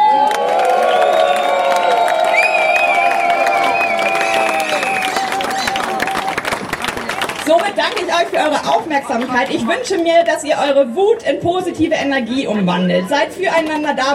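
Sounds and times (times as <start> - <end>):
protesters shouting: 0.0 - 6.5
protest crowd cheering at a rally for nursing care workers: 0.0 - 8.2
protest crowd clapping: 0.2 - 8.4
shrill whistles: 2.2 - 6.0
speech: 7.9 - 14.1.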